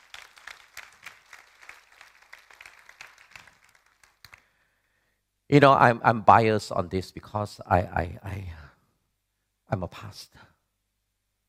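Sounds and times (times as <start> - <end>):
audience clapping: 0.0 - 4.6
speech: 5.5 - 8.6, 9.7 - 10.5.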